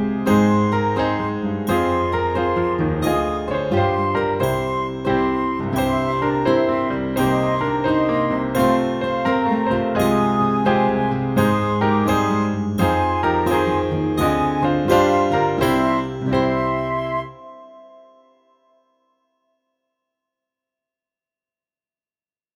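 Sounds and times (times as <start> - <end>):
backing track: 0.0 - 18.0.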